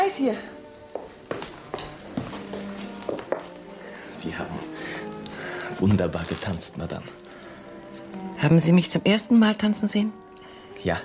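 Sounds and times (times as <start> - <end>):
speech: 0.1 - 0.6, 5.8 - 7.4, 8.4 - 10.2, 10.8 - 11.0
footsteps of people walking: 0.6 - 3.8.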